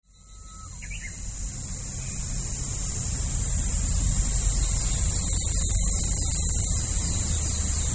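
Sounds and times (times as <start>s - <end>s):
evening cicada call: 0.0s - 7.9s.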